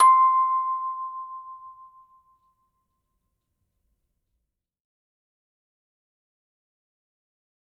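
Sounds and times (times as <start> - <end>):
music box note C5: 0.0 - 2.8.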